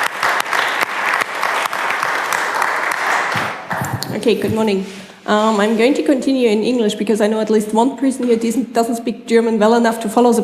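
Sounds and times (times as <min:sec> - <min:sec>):
audience applause: 0:00.0 - 0:04.0
speech: 0:04.2 - 0:10.4.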